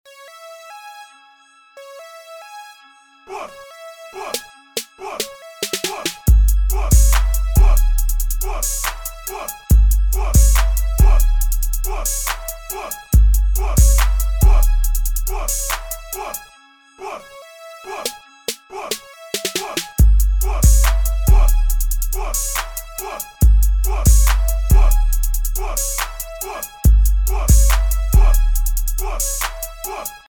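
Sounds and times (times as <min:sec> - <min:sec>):
Dirty South crunk beats and instrumentals: 0:04.8 - 0:16.4, 0:18.9 - 0:30.2.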